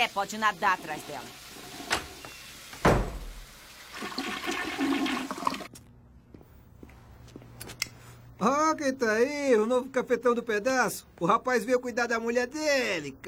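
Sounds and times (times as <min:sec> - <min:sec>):
speech: 0:00.0 - 0:01.4, 0:08.4 - 0:13.2
toilet flushing: 0:00.0 - 0:05.7.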